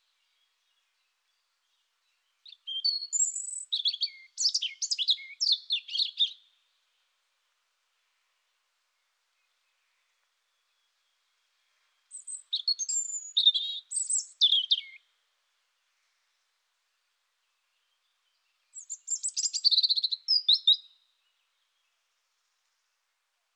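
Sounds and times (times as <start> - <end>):
European robin singing high warbled notes and fast high trills: 0.0 - 7.0, 9.4 - 15.2, 17.5 - 22.0.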